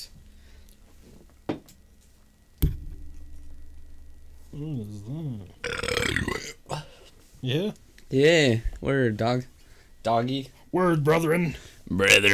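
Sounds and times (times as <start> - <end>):
speech: 4.6 - 5.8, 7.4 - 12.3
drawn-out croaking burp: 5.1 - 6.8.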